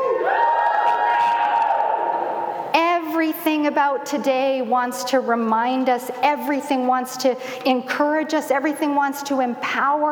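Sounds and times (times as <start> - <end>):
audience cheering: 0.0 - 2.4
speech: 3.5 - 10.1.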